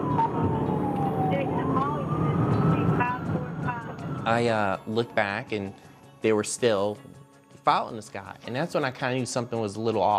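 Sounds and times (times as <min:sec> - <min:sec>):
engine and road noise rumble of speeding vehicle: 0:00.0 - 0:04.5
police siren wailing: 0:00.0 - 0:05.9
speech: 0:04.2 - 0:10.1.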